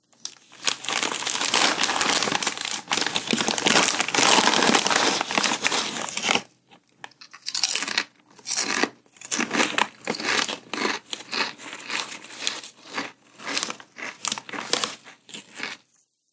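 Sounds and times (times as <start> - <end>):
eating crisps: 0.3 - 6.0, 7.4 - 15.9
bag of crisps opening: 0.5 - 6.4, 7.4 - 10.6.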